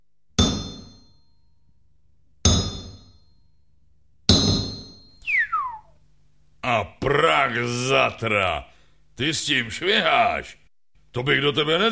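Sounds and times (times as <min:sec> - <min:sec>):
heavy sledgehammer striking metal: 0:00.4 - 0:01.2, 0:02.4 - 0:03.4, 0:04.3 - 0:05.2
descending whistling sweep: 0:05.2 - 0:06.0
speech: 0:06.8 - 0:11.9.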